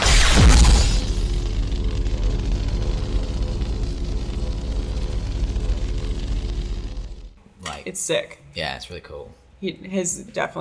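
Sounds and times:
crackling lightsaber igniting and humming: 0.0 - 7.4
speech: 7.9 - 10.5.

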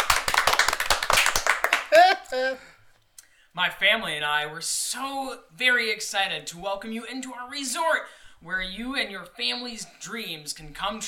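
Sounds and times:
crowd applauding: 0.0 - 2.2
speech: 2.3 - 2.7, 3.6 - 11.0.

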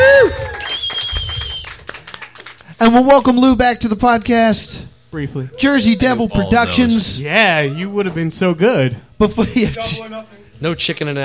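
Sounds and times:
audience clapping: 0.0 - 3.0
falling whistle-like tone: 0.6 - 1.7
speech: 2.9 - 11.2.

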